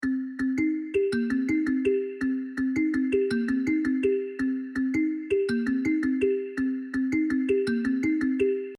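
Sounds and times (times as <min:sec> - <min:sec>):
kalimba: 0:00.0 - 0:08.7.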